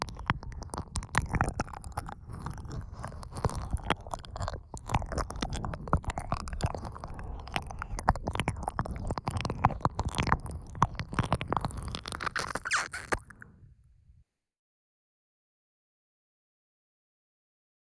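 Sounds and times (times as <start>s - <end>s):
ear licking on the left side: 0.0s - 13.6s.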